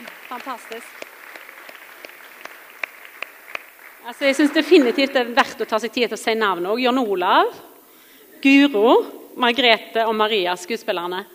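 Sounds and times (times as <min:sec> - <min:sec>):
sparse audience clapping for the actors of a drama performance: 0:00.0 - 0:06.0
speech: 0:00.3 - 0:01.1, 0:04.0 - 0:07.7, 0:08.4 - 0:11.3.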